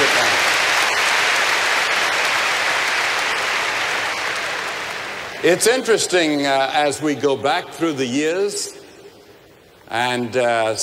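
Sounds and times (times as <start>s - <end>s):
large audience applauding: 0.0s - 5.6s
speech: 5.4s - 8.8s, 9.9s - 10.8s.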